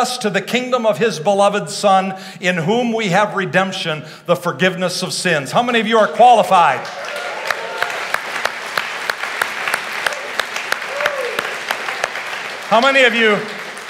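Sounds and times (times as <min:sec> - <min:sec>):
speech: 0:00.0 - 0:07.2, 0:12.7 - 0:13.6
audience applause: 0:06.8 - 0:13.8.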